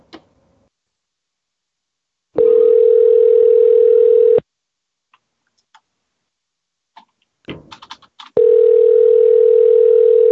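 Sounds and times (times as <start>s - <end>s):
electronic telephone tones: 2.4s - 4.4s, 8.4s - 10.3s.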